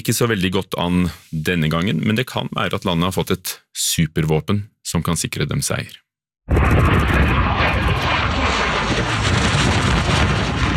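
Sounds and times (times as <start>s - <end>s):
speech: 0.0s - 8.1s
Russian MiG-29 fighter jet flying low over the ground in Wisconsin: 6.5s - 10.7s.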